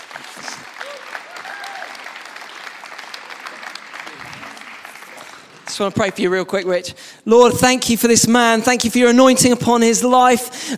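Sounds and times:
audience applause: 0.0 - 6.2
speech: 5.8 - 10.7.

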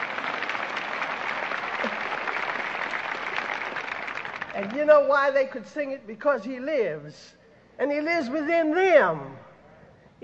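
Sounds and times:
audience applause: 0.0 - 4.8
speech: 4.6 - 9.5.

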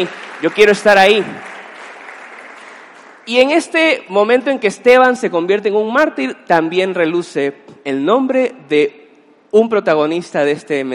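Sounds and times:
speech: 0.0 - 1.5, 3.3 - 10.9
crowd clapping: 0.0 - 3.7.

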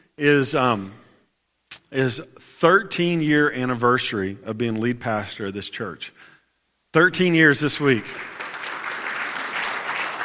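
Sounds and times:
speech: 0.2 - 1.0, 1.9 - 6.3, 6.9 - 8.4
audience applause: 8.1 - 10.2.

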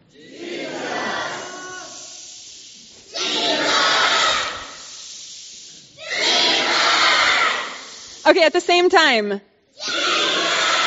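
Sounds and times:
crowd shouting together: 0.2 - 2.1, 3.1 - 4.9, 6.0 - 8.1, 9.8 - 10.8
speech: 8.3 - 9.9.

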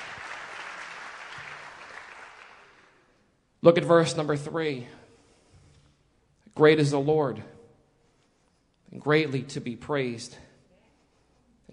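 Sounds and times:
audience clapping hands: 0.0 - 3.2
speech: 3.6 - 5.0, 6.6 - 7.5, 8.9 - 10.5.

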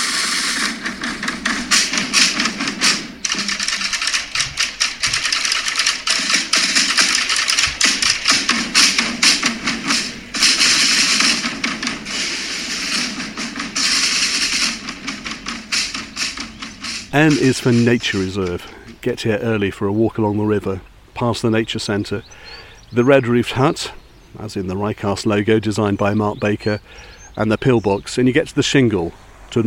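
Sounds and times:
drummers: 0.0 - 18.9
speech: 17.2 - 29.6.

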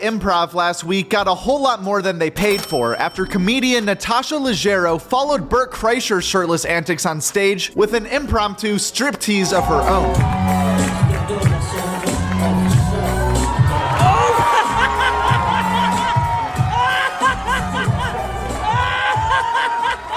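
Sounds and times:
speech: 0.0 - 11.0
comedy club crowd cheering and whooping: 9.5 - 20.1
comedy club crowd laughter: 14.0 - 20.1.

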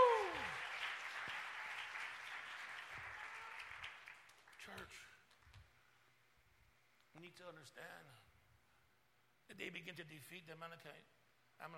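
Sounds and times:
audience clapping: 0.0 - 5.8
speech: 7.2 - 8.3, 9.5 - 11.7.

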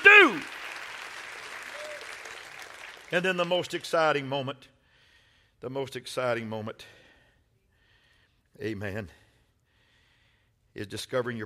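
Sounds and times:
audience clapping hands: 0.0 - 4.2
speech: 3.1 - 4.8, 5.6 - 7.0, 8.6 - 9.2, 10.8 - 11.4.

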